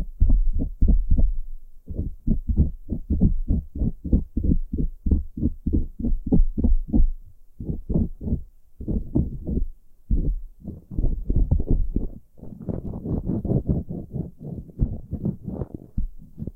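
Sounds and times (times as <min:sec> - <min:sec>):
ear picking muffled thumps: 0:00.0 - 0:16.5
scratchy rustle: 0:12.0 - 0:16.5.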